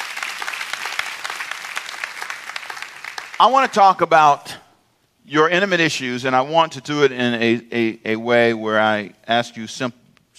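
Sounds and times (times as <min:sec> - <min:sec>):
audience hand clapping applause: 0:00.0 - 0:04.1
speech: 0:03.4 - 0:04.5, 0:05.2 - 0:10.3.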